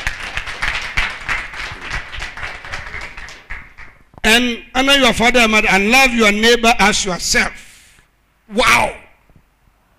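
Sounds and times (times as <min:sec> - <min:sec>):
audience clapping: 0:00.0 - 0:04.1
speech: 0:04.3 - 0:07.6, 0:08.5 - 0:09.0.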